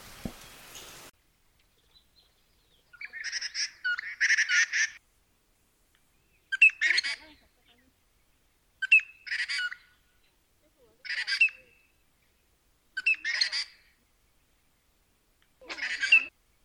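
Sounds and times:
treepie calling: 2.9s - 5.0s, 8.8s - 10.3s, 11.0s - 12.0s, 13.0s - 14.0s, 15.6s - 16.4s.

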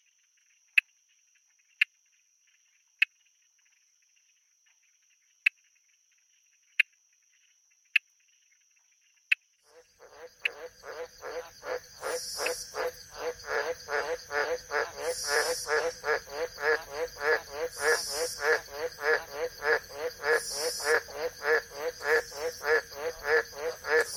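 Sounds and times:
frog croaking: 9.3s - 24.1s.

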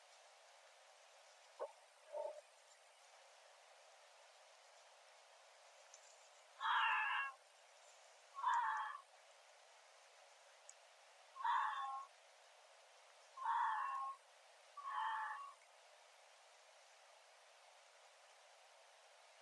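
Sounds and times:
Arctic fox: 1.5s - 2.7s, 6.6s - 7.4s, 8.3s - 9.1s, 11.4s - 12.1s, 13.4s - 14.2s, 14.8s - 15.6s.

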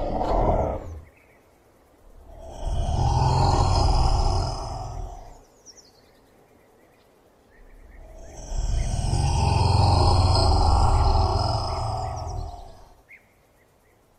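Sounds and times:
Komodo dragon: 0.0s - 1.2s, 2.0s - 5.4s, 7.6s - 13.0s.

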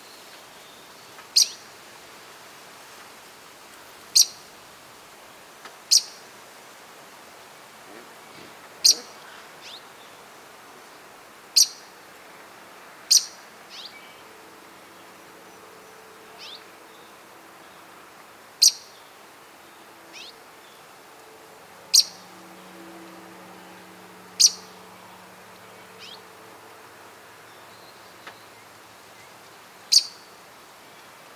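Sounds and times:
background hiss: 0.0s - 31.3s
bird chip calls: 7.9s - 9.8s, 13.1s - 13.9s, 16.3s - 16.6s, 20.1s - 20.4s, 21.9s - 22.2s, 24.4s - 24.8s, 25.9s - 26.2s, 29.9s - 30.3s.

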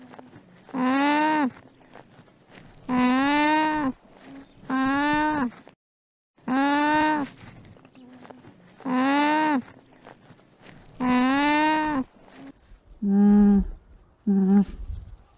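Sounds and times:
alpaca vocalizing: 0.0s - 1.6s, 2.9s - 5.6s, 6.5s - 7.4s, 8.0s - 9.7s, 11.0s - 14.8s.

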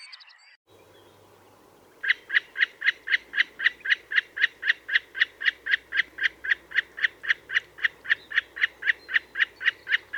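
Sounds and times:
snipe calling: 0.7s - 10.1s.

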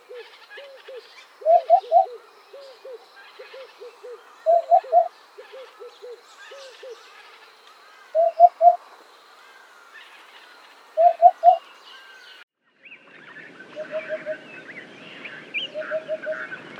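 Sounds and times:
hoopoe calling: 0.0s - 7.4s, 8.1s - 8.9s, 11.0s - 11.7s, 13.8s - 14.5s, 15.6s - 16.6s.

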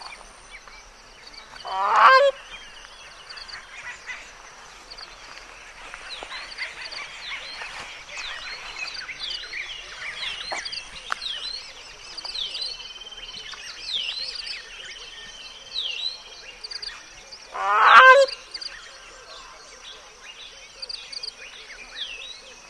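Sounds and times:
Grey Crowned Crane calling: 1.5s - 11.7s, 17.5s - 18.6s.

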